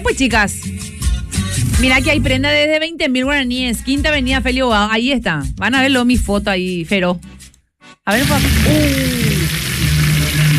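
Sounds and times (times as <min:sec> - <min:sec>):
speech: 0:00.0 - 0:07.4, 0:08.0 - 0:09.2
pork with rice frying in a pan: 0:08.1 - 0:10.5.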